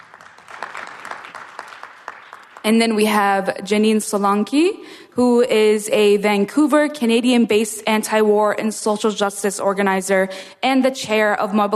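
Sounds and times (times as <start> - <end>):
audience applause at a panel event: 0.0 - 2.7
speech: 2.6 - 11.7.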